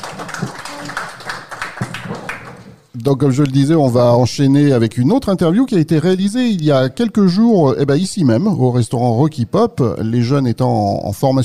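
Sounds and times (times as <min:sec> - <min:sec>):
audience applauding: 0:00.0 - 0:02.9
speech: 0:03.0 - 0:11.4.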